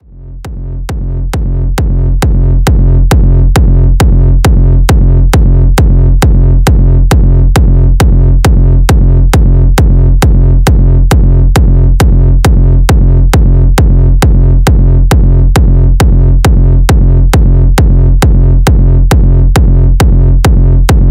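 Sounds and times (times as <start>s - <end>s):
kick drums: 0.4s - 21.1s.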